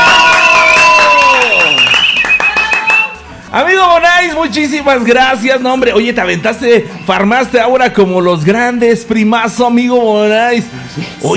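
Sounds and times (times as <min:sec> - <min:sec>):
audience applause: 0:00.0 - 0:03.2
speech: 0:03.6 - 0:11.3.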